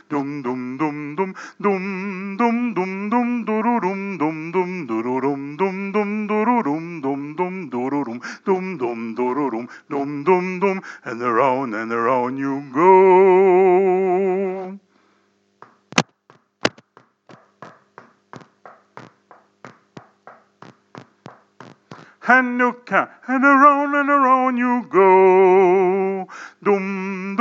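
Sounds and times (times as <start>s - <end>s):
man singing: 0.0s - 14.8s, 22.2s - 27.3s.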